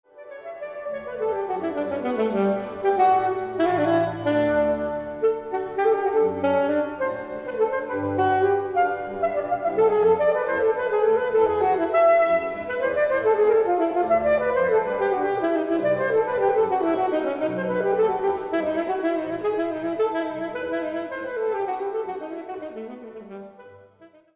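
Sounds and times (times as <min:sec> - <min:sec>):
flute sonata: 0:00.1 - 0:24.3.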